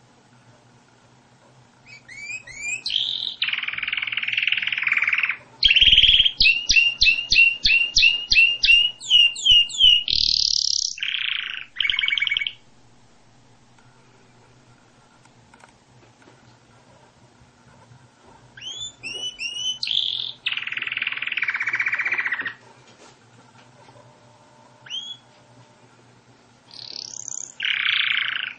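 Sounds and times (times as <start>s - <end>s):
canary singing: 1.8s - 13.3s, 18.6s - 22.6s, 24.8s - 25.3s, 26.7s - 28.5s.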